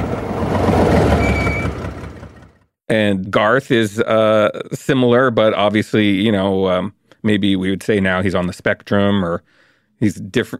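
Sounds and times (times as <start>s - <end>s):
car engine rumbling while driving: 0.0s - 2.6s
road noise: 0.0s - 2.6s
speech: 2.9s - 10.5s.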